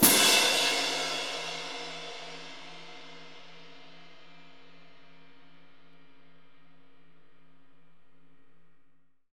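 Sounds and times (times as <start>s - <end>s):
orchestral cymbal crash: 0.0s - 4.4s.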